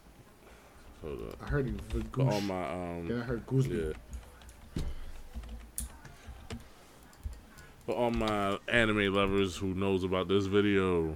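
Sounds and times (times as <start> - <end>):
speech: 1.0 - 4.2, 7.9 - 11.1
typing on a computer keyboard into a chat: 3.8 - 8.4.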